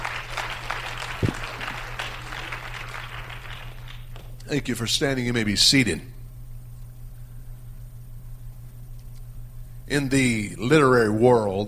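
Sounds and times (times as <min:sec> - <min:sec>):
audience clapping hands: 0:00.0 - 0:04.4
speech: 0:04.5 - 0:06.1, 0:09.9 - 0:11.6.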